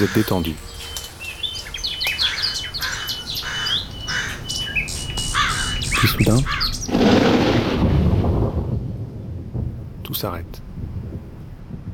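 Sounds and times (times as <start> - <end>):
speech: 0.0 - 1.0, 6.0 - 7.4, 10.2 - 10.6
birds singing in a forest: 0.0 - 7.2
leaves rustling in a forest: 0.0 - 8.7.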